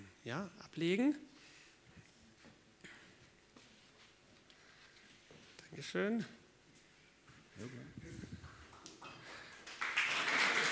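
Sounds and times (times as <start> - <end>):
speech: 0.2 - 1.3, 5.7 - 6.4, 7.6 - 8.6
applause: 8.5 - 10.6.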